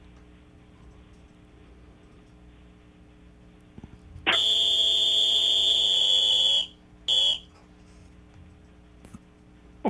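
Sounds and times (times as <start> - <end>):
loud high-pitched electronic buzzer warning sound: 4.3 - 7.4.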